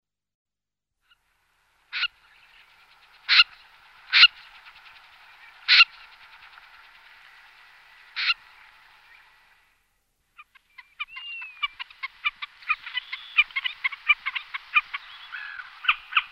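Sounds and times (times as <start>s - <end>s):
common snipe calling: 1.9s - 7.4s, 8.0s - 9.3s, 10.4s - 16.3s.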